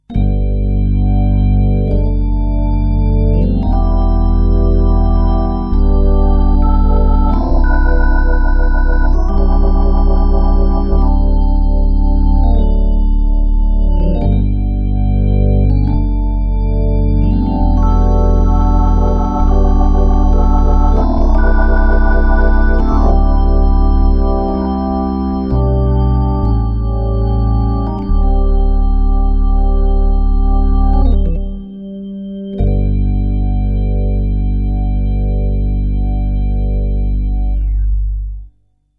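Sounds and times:
Crumar Mojo organ playing classic gospel: 0.1 - 38.0.

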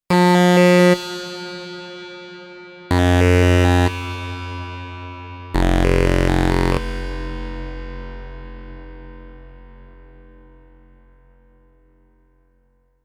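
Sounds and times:
Korg KROSS 2 synthesizer with reverb: 0.1 - 8.8.

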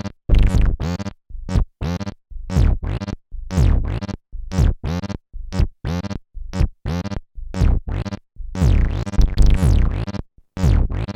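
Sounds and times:
TD-3 synthesizer beat with slide: 0.3 - 11.1.

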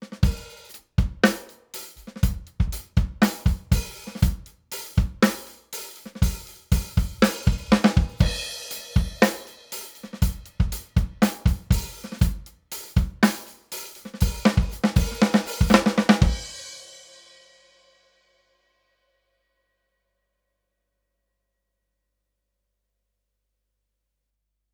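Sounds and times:
snare drum: 0.0 - 16.7
bass drum: 0.2 - 1.4, 2.0 - 5.4, 6.2 - 9.4, 10.2 - 13.3, 14.2 - 16.5.

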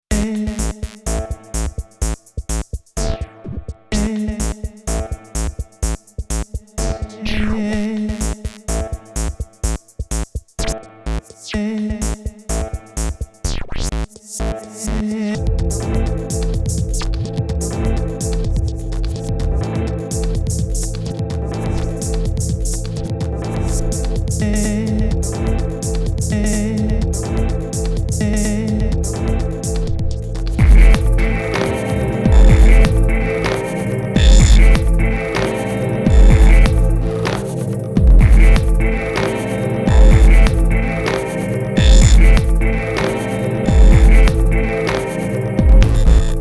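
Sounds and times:
preset pattern: 0.0 - 46.4.

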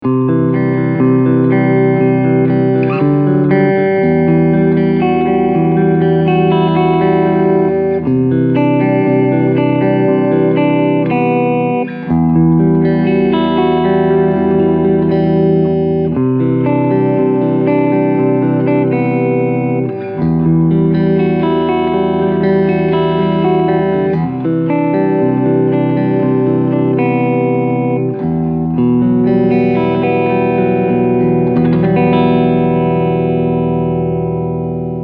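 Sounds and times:
clean electric guitar on both pickups: 0.0 - 35.0.

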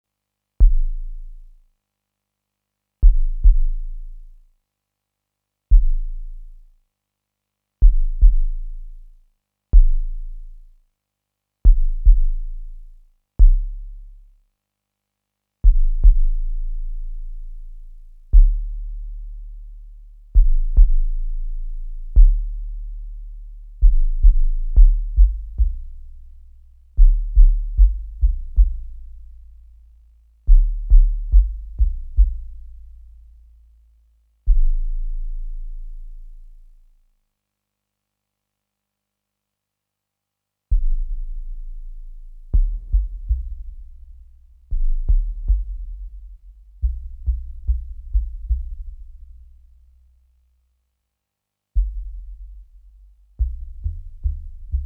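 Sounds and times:
sub bass in B minor: 0.6 - 1.6, 3.0 - 4.4, 5.7 - 6.7, 7.8 - 9.2, 9.8 - 10.8, 11.7 - 14.4, 15.6 - 37.0, 40.7 - 50.4, 51.8 - 54.8.

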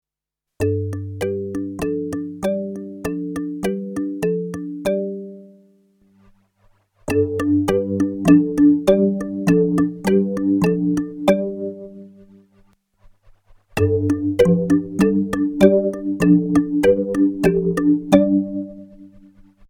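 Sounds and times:
DX7 synth marimba: 0.6 - 5.6, 7.1 - 12.2, 13.8 - 19.3.

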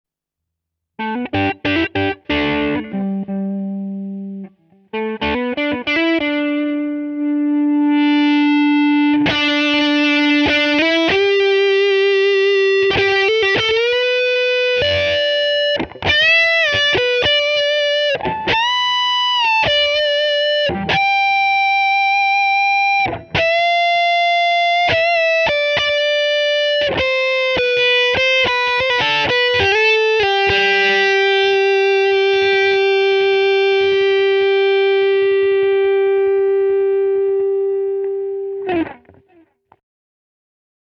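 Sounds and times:
guitar solo on neck humbucker, volume 3 then 10: 1.0 - 39.6.

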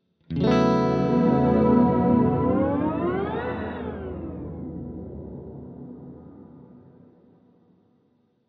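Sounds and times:
rising sound: 1.1 - 5.4.

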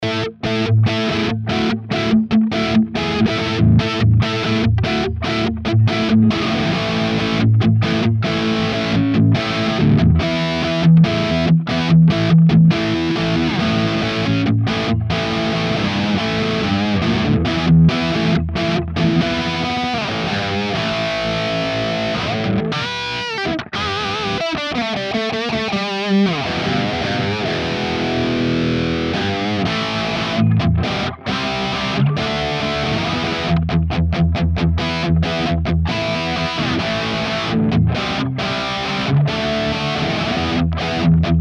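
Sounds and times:
Epiphone high-gain electric guitar rhythm: 0.0 - 41.3.

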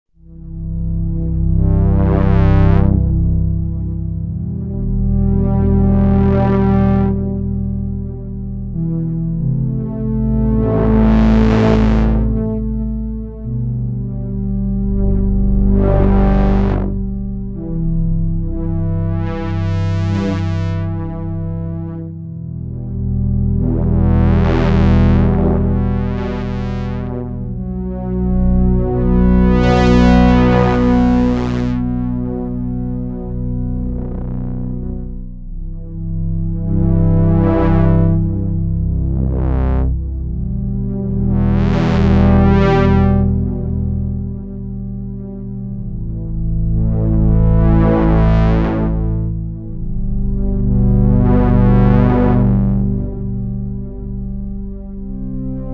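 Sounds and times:
Behringer UB-Xa synthesizer with polypressure: 0.2 - 55.7.

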